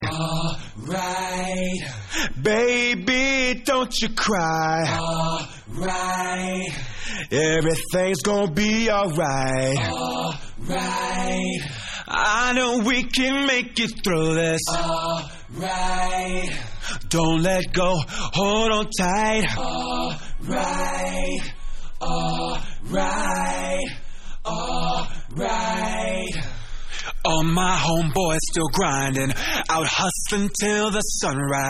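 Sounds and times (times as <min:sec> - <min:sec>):
a cappella singing: 0:00.0 - 0:31.6.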